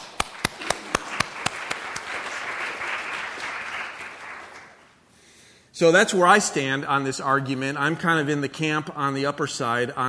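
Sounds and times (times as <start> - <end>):
audience round of applause: 0.0 - 5.0
speech: 5.8 - 10.0.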